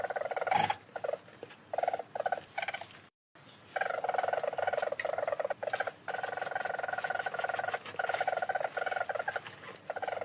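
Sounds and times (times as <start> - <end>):
weasel trilling: 0.0 - 10.2.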